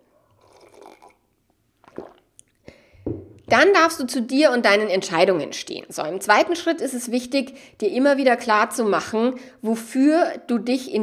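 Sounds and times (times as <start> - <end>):
person with a slight cold sipping tea: 0.0 - 3.5
speech: 3.5 - 11.0.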